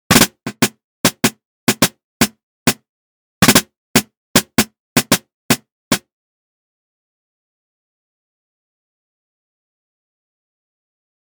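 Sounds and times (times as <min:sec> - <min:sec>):
snare drum: 0:00.1 - 0:02.8, 0:03.4 - 0:06.0.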